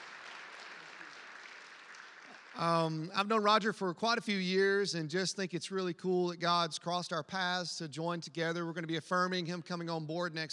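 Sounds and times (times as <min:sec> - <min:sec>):
crowd clapping: 0:00.0 - 0:03.5
speech: 0:02.6 - 0:10.5.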